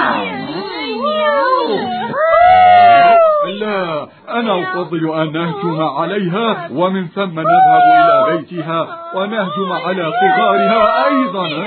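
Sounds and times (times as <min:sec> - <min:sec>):
voice imitating a cat's meowing: 0:00.2 - 0:03.6, 0:07.5 - 0:08.4, 0:09.5 - 0:11.6
speech: 0:04.4 - 0:11.6.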